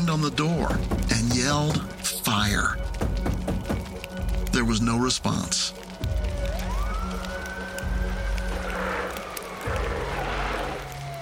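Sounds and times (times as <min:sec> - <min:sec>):
speech: 0:00.0 - 0:03.4, 0:04.6 - 0:05.8
fire engine siren wailing: 0:05.6 - 0:11.2.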